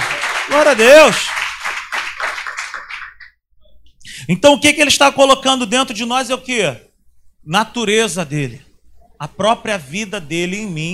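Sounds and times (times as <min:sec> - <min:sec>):
audience clapping: 0:00.0 - 0:03.4
speech: 0:00.5 - 0:01.4, 0:04.3 - 0:10.9.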